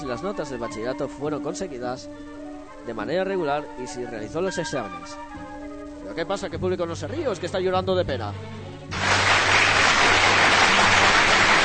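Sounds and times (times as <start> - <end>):
speech: 0.0 - 9.1
applause: 8.9 - 11.6.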